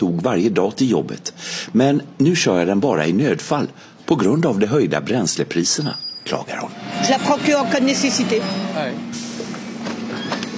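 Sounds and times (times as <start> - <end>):
buses arriving and departing at a stop: 0.0 - 3.1, 5.5 - 10.5
speech: 0.0 - 9.2.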